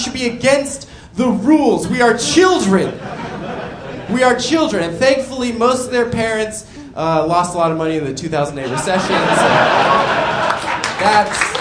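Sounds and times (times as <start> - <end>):
speech: 0.2 - 3.3, 4.1 - 10.4, 11.0 - 11.6
laughter: 2.2 - 4.8, 8.6 - 11.5
audience applause: 9.6 - 11.6.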